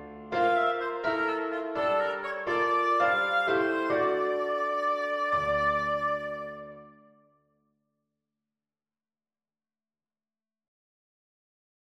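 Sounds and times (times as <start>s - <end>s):
relaxing oboe playing: 0.3s - 7.1s.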